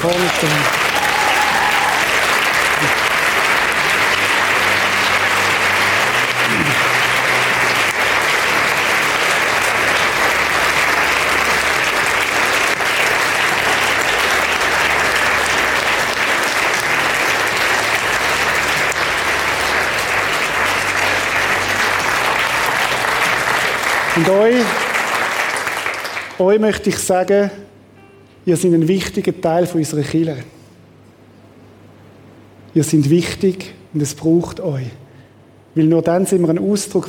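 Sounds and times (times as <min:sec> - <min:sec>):
speech: 0:00.0 - 0:00.9, 0:26.4 - 0:27.7, 0:28.4 - 0:30.6, 0:32.8 - 0:35.0, 0:35.7 - 0:37.0
audience applause: 0:00.0 - 0:26.4.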